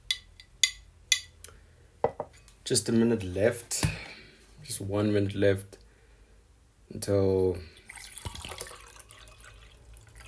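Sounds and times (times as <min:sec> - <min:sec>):
speech: 0:02.7 - 0:03.9, 0:04.8 - 0:05.8, 0:07.0 - 0:07.7
water pouring: 0:07.7 - 0:10.2.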